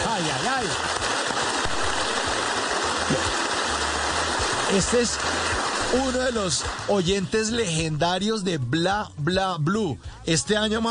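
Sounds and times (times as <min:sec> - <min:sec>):
standing ovation applause: 0:00.0 - 0:08.0
speech: 0:04.7 - 0:10.8.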